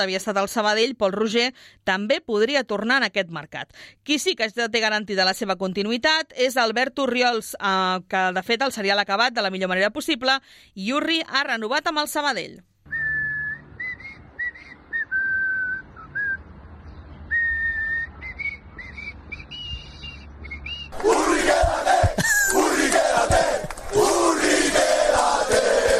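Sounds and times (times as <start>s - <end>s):
speech: 0.0s - 12.7s
whistled melody: 12.9s - 16.4s, 17.3s - 20.9s
football crowd chanting a player's name: 20.9s - 25.9s.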